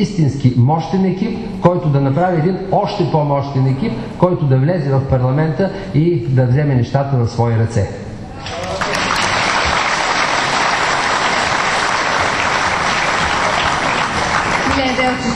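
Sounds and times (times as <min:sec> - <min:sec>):
speech: 0:00.0 - 0:08.6, 0:15.0 - 0:15.3
audience applause: 0:08.4 - 0:15.3.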